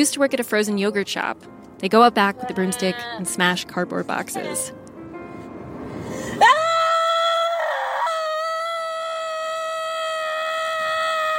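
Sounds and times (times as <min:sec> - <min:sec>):
speech: 0:00.0 - 0:04.8, 0:06.4 - 0:06.6
person screaming: 0:06.4 - 0:11.3.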